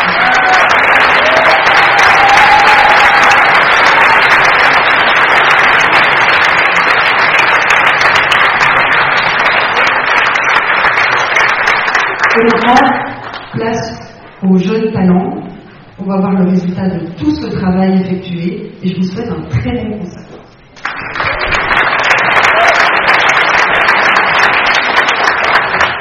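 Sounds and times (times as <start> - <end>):
whoops and cheers: 0.0 - 4.1, 22.3 - 23.2
crowd applauding: 0.0 - 13.6, 20.7 - 25.9
speech: 13.6 - 15.4, 16.0 - 20.3.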